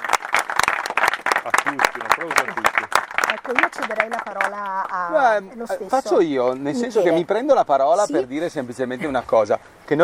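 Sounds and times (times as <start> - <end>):
audience applause: 0.0 - 5.1
speech: 1.6 - 10.0.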